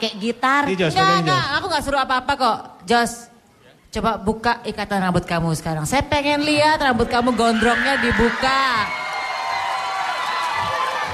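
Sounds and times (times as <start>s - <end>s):
speech: 0.0s - 3.3s, 3.9s - 9.0s
audience screaming and cheering: 7.1s - 11.1s.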